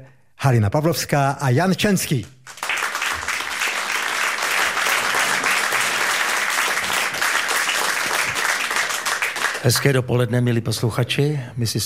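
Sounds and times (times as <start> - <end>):
speech: 0.0 - 2.6, 9.6 - 11.8
crowd applauding: 2.5 - 10.0.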